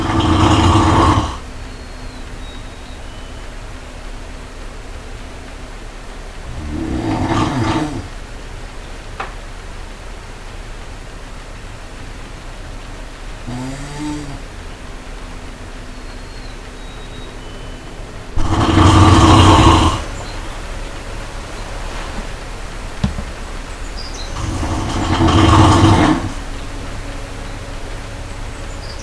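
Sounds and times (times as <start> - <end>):
brown bear giving a low droning moan: 0.0 - 1.4, 6.5 - 8.2, 13.4 - 14.5, 18.3 - 20.3, 24.4 - 26.5.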